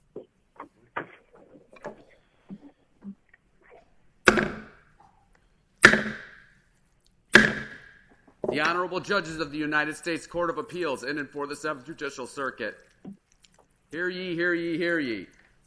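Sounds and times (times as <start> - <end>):
gavel banging on wood: 4.3 - 4.8, 5.8 - 6.5, 7.3 - 8.8
speech: 8.6 - 12.9, 13.9 - 15.4.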